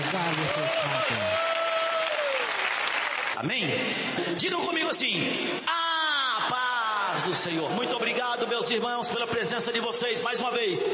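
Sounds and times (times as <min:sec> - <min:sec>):
congregation clapping in praise to Jesus during a church service: 0:00.0 - 0:04.2
speech: 0:03.4 - 0:05.8, 0:07.1 - 0:10.9.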